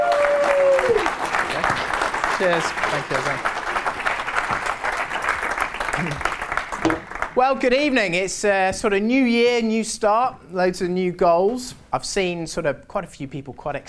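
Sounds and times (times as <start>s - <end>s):
audience applause: 0.0s - 7.4s
speech: 2.4s - 3.6s, 6.0s - 13.8s.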